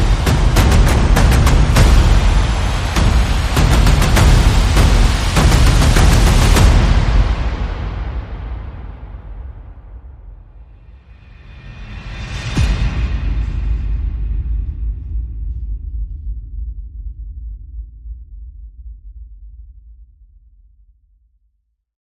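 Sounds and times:
percussion: 0:00.0 - 0:17.4.

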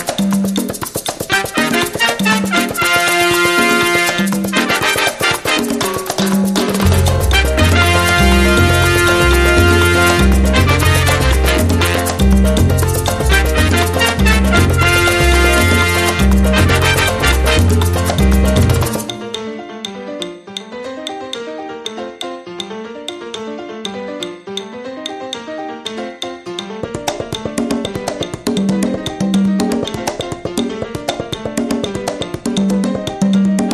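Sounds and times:
big band mambo music: 0:00.0 - 0:19.4, 0:26.8 - 0:33.7.

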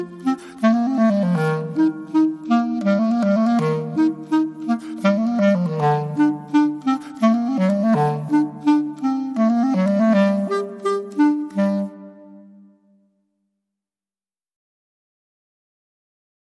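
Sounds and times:
Spanish Baroque music: 0:00.0 - 0:12.9.

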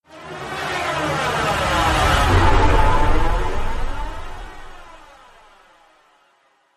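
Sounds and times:
flanger effect: 0:01.2 - 0:05.4.

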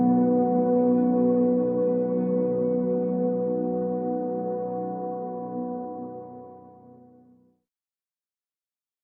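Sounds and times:
synth pads: 0:00.0 - 0:07.2.

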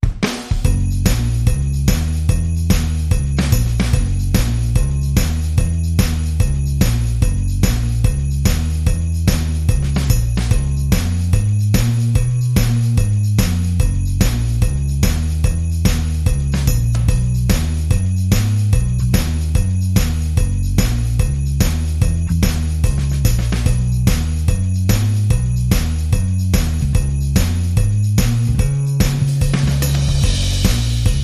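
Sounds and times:
drum and bass music: 0:00.0 - 0:31.2.

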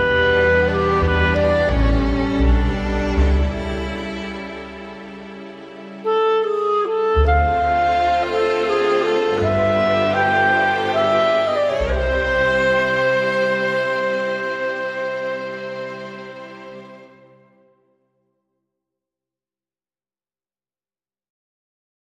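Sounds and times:
wind instruments: 0:00.0 - 0:17.7
strings: 0:00.0 - 0:17.8.

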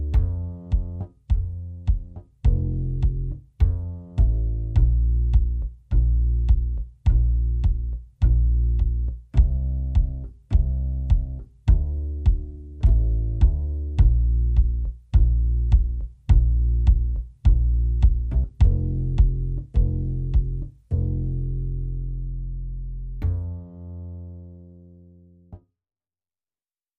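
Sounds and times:
drums: 0:00.0 - 0:20.8
bass: 0:00.0 - 0:25.7.

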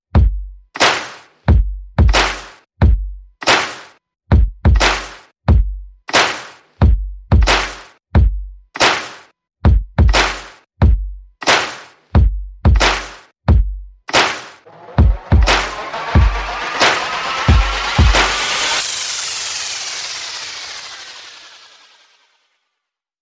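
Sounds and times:
percussion: 0:00.1 - 0:22.2
sound effects: 0:14.6 - 0:22.5.

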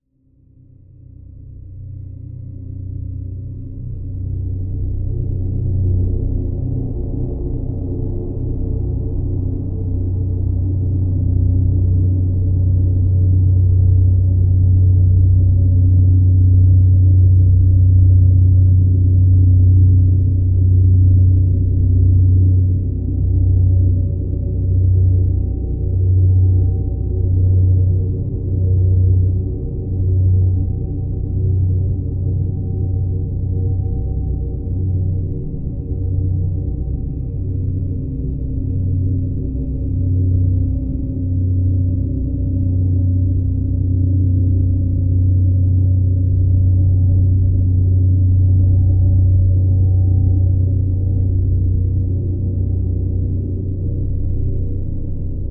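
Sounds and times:
drone: 0:01.6 - 0:55.5.

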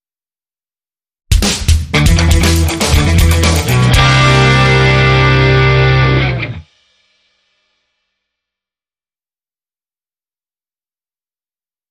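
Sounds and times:
guitar power chords: 0:01.9 - 0:06.7.

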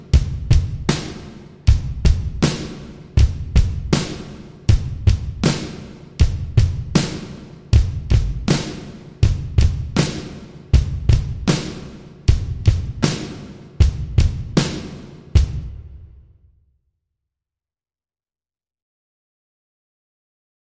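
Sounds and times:
drums: 0:00.0 - 0:16.5.

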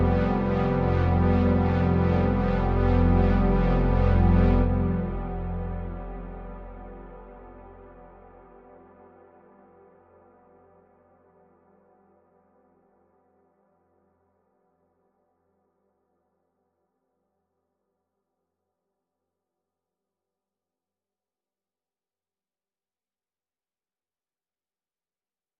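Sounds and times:
synth chords: 0:00.0 - 0:08.7.

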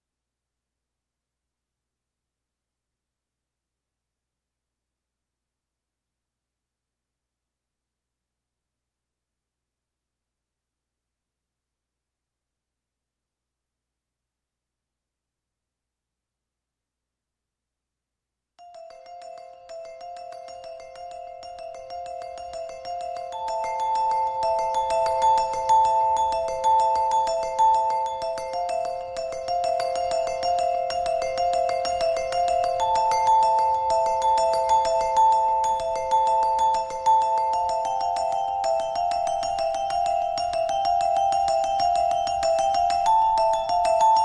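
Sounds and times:
vibraphone: 0:18.6 - 0:44.2.

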